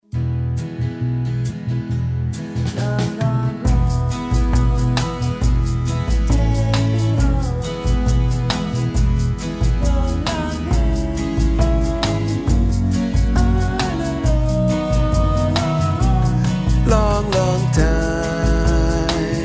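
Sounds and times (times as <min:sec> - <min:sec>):
bass: 0:00.0 - 0:19.4.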